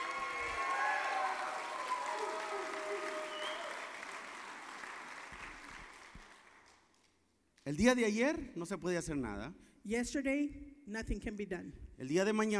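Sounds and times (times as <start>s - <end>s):
scattered cheers and whistle-like tones: 0.0s - 4.2s
audience applause: 0.0s - 6.9s
speech: 7.7s - 12.5s.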